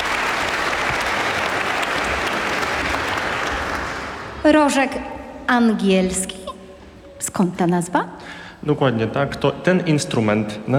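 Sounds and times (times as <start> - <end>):
audience applause: 0.0 - 4.4
speech: 4.4 - 6.4, 7.2 - 10.7.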